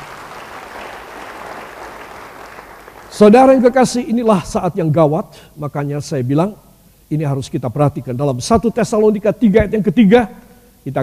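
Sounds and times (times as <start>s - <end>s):
audience applause: 0.0s - 3.2s
speech: 3.2s - 11.0s.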